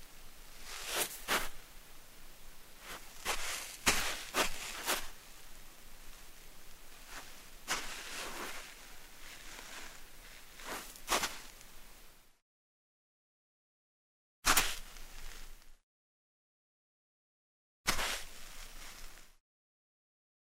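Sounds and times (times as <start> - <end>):
barefoot steps on dry sand: 0.6 - 1.6, 2.8 - 5.2, 7.0 - 11.6, 14.5 - 15.6, 17.9 - 19.3.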